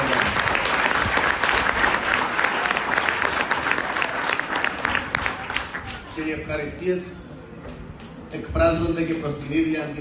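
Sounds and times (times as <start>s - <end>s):
warm applause from audience: 0.0s - 6.5s
speech: 6.2s - 7.2s, 8.3s - 9.9s.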